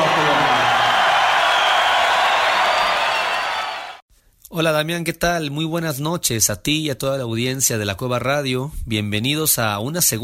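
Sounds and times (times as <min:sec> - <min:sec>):
audience cheering and applauding: 0:00.0 - 0:04.0
speech: 0:04.6 - 0:10.2.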